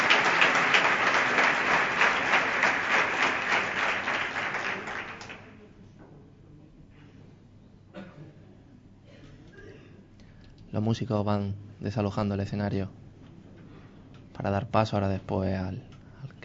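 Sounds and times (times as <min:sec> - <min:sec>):
audience applause: 0:00.0 - 0:05.6
speech: 0:10.8 - 0:13.0, 0:14.4 - 0:15.9.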